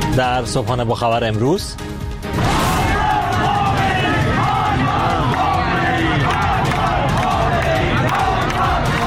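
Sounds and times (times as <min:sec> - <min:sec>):
speech: 0:00.2 - 0:01.9
large crowd of protesters chanting slogans: 0:02.4 - 0:09.0.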